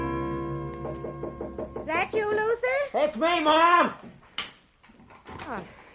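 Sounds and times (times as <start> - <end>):
back door squeaky creak: 0.2 - 2.3
back door opening: 0.4 - 2.4
speech: 2.1 - 4.1, 5.5 - 5.7.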